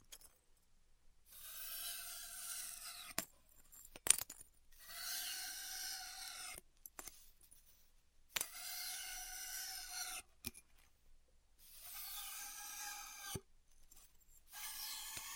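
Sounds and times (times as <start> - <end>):
styrofoam being heat cut: 1.3 - 3.2, 4.8 - 6.6, 8.3 - 10.3, 11.6 - 13.4, 14.5 - 15.3.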